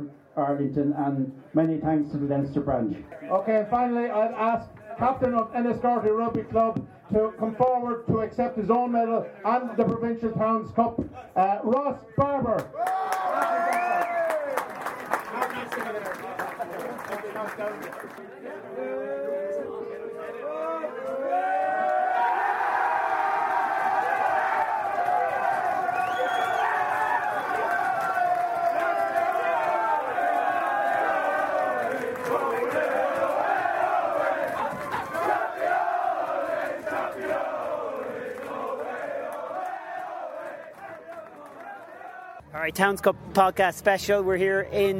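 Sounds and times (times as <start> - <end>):
speech: 0.4 - 13.6, 17.4 - 18.8, 42.7 - 44.9
large crowd cheering and applauding: 12.8 - 18.2, 20.4 - 42.4.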